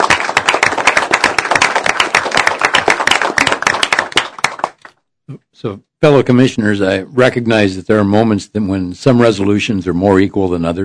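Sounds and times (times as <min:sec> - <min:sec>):
audience applause at a public utility district commissioners' meeting: 0:00.0 - 0:04.9
speech: 0:05.6 - 0:10.8.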